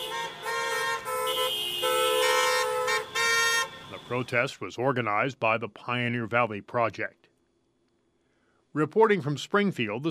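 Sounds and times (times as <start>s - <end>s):
protesters blaring car horns: 0.0s - 4.4s
speech: 4.1s - 7.2s, 8.7s - 10.0s.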